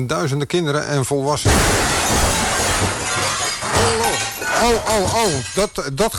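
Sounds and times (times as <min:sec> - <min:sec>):
speech: 0:00.0 - 0:03.0, 0:03.8 - 0:06.1
car crashing into building: 0:01.5 - 0:05.1
crunching and scattering debris: 0:01.5 - 0:06.1
glass shattering: 0:01.5 - 0:06.1.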